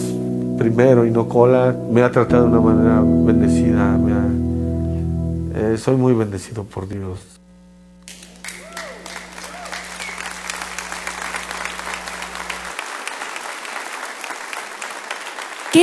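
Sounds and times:
low hum: 0.0 - 6.3, 7.3 - 12.8
speech: 0.6 - 4.4, 5.6 - 7.3
audience applause: 8.1 - 15.8.

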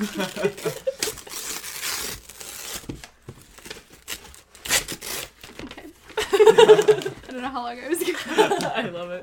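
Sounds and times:
people chuckling: 0.0 - 1.2, 6.2 - 7.3, 8.0 - 9.2
unicorn and donut wrapping paper crinkling and tearing on a white box: 0.0 - 6.2
people talking: 7.3 - 9.2.

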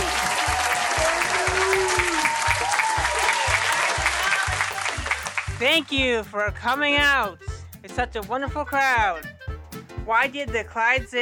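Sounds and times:
cheers and whoops: 0.0 - 4.9
live audience clapping: 0.0 - 5.9
low thumping beat: 0.0 - 11.1
speech: 5.6 - 9.3, 10.0 - 11.1.

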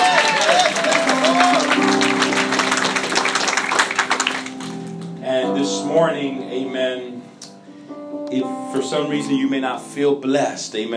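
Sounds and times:
people cheering: 0.0 - 4.8
audience applause: 0.0 - 5.1
organ or keyboard tones: 0.0 - 10.0
speech: 8.3 - 10.9.

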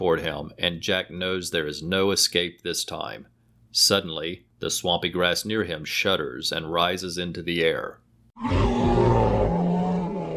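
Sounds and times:
speech: 0.0 - 9.1
T-Rex roar: 8.4 - 10.3.

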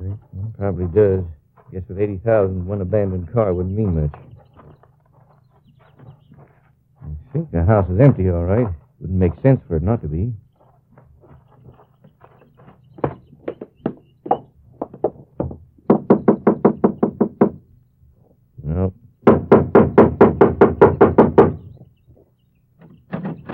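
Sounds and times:
speech: 0.6 - 4.3, 7.3 - 10.4
firm knocking on a door: 13.0 - 17.6, 19.2 - 21.7.

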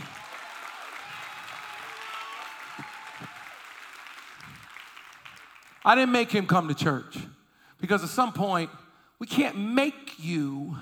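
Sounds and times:
audience clapping, applause: 0.0 - 6.4
speech: 5.8 - 10.8.

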